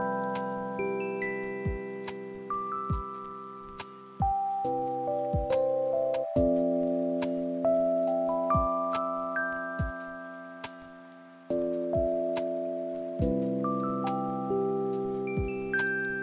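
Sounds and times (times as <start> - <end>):
soft sensual sleep soundtrack: 0.0 - 16.2.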